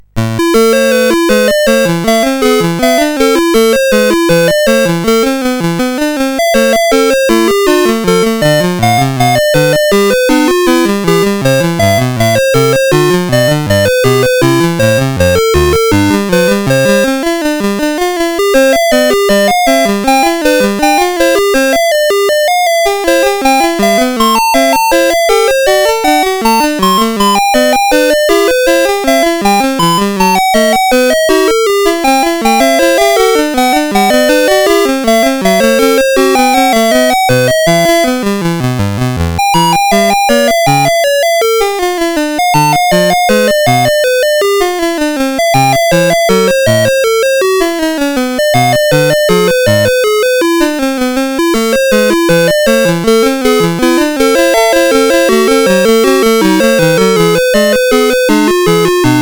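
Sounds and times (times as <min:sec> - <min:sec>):
SID CSG8580R5 chip game music: 0:00.0 - 0:59.1.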